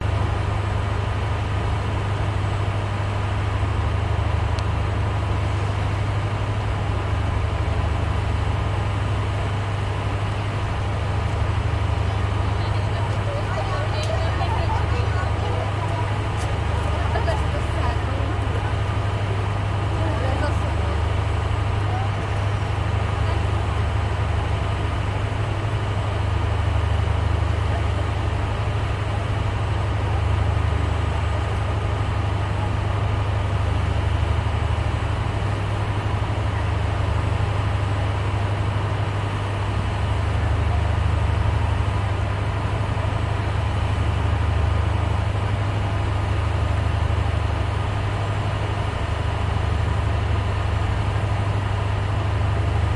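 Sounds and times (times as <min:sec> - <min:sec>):
cruise liner engines running at the docks: 0:00.0 - 0:52.9.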